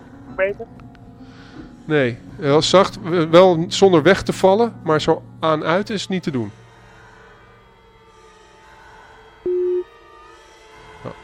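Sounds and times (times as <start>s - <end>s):
speech: 0.4s - 6.6s
telephone busy tone on a call: 9.5s - 9.9s.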